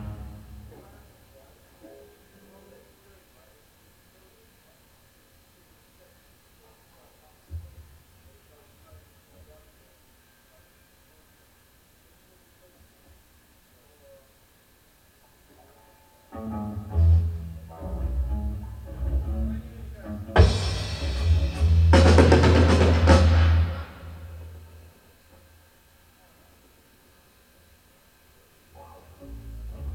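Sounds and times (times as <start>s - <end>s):
soundcheck setting levels: 16.4s - 24.8s.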